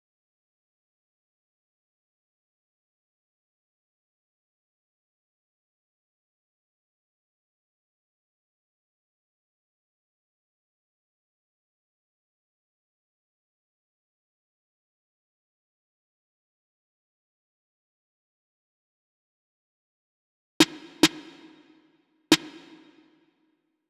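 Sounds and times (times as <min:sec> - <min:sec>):
snare drum: 0:20.6 - 0:23.1.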